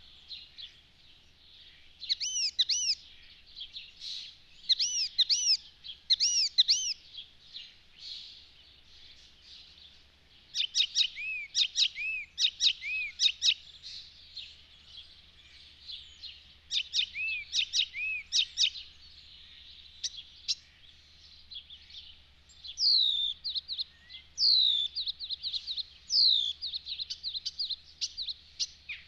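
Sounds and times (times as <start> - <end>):
icterine warbler bird sounds: 0.0 - 29.0.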